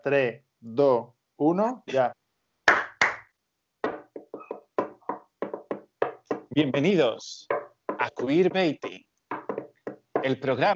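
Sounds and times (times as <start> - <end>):
speech: 0.0 - 2.2, 6.6 - 9.0, 10.2 - 10.7
flamenco hand clapping: 2.7 - 3.3
cajón: 3.8 - 10.6.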